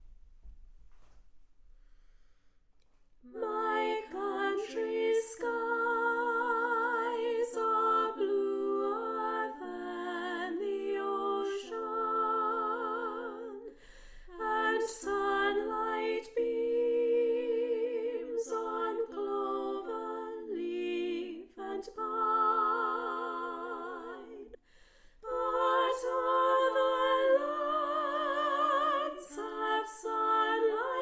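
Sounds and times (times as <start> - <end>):
soprano singing: 3.2 - 24.6, 25.2 - 31.0.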